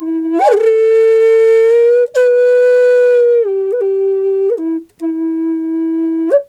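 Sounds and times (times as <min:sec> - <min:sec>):
wild flute in E: 0:00.0 - 0:06.4.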